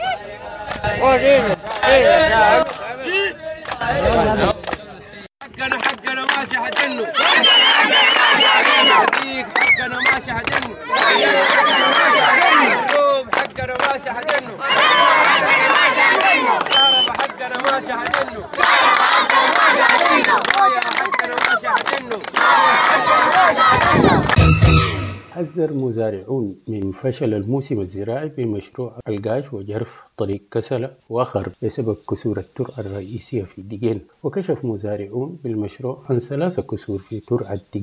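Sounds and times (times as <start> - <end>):
protest crowd chanting: 0.0 - 25.2
speech: 0.9 - 2.6, 8.4 - 12.9, 17.4 - 24.1, 25.4 - 37.8.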